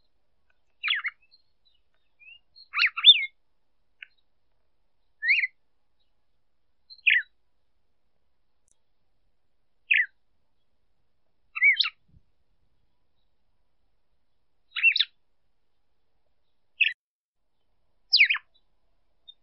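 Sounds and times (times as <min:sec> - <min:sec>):
female red-cowled cardinal calling: 0:00.5 - 0:03.4, 0:05.2 - 0:05.6, 0:06.9 - 0:07.3, 0:09.9 - 0:10.2, 0:11.6 - 0:12.0, 0:14.7 - 0:15.2, 0:16.8 - 0:17.0, 0:18.1 - 0:19.4.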